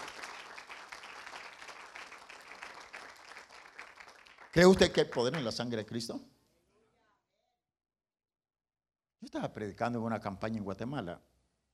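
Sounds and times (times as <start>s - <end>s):
audience applauding: 0.0s - 5.7s
speech: 4.6s - 6.3s, 9.5s - 11.3s.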